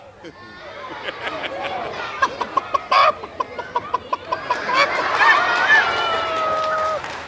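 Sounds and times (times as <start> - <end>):
flock of chickens clucking and squawking: 0.3 - 5.4
rooster mounting a hen letting out a rising cackle: 1.4 - 7.0.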